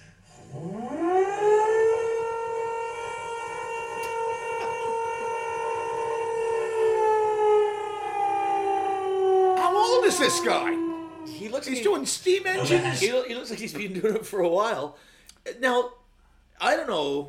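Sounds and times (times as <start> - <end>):
air raid alarm siren wailing: 0.3 - 11.9
speech: 10.3 - 16.0, 16.6 - 17.2
laughter: 12.3 - 14.4.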